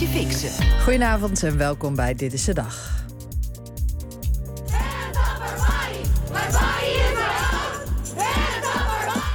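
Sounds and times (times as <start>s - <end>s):
speech: 0.2s - 3.1s
demonstrators chanting in unison at an abortion law protest in Texas: 4.7s - 9.3s.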